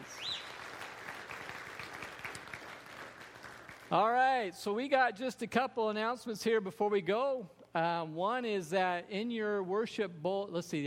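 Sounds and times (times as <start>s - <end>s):
round of applause for a family: 0.0s - 4.0s
speech: 3.9s - 10.8s.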